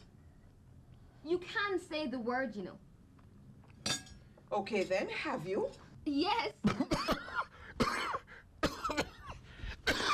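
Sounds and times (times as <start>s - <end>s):
speech: 1.2s - 2.9s, 4.5s - 7.2s
man coughing and choking on a bone stuck in his throat: 6.6s - 10.1s.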